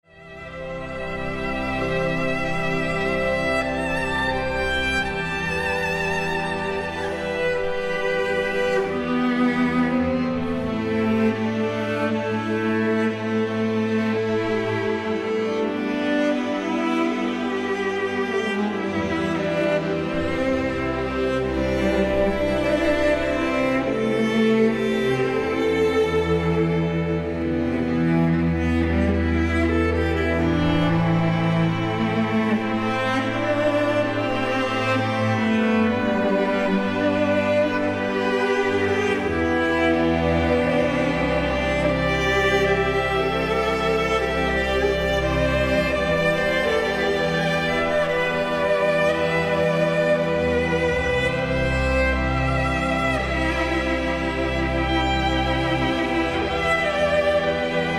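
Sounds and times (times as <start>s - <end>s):
cello and strings concerto: 0.0s - 57.9s.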